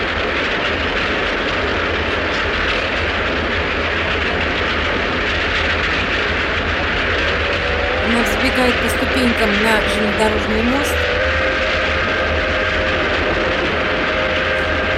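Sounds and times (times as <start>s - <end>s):
steam locomotive passing: 0.0s - 14.9s
speech: 9.2s - 11.0s.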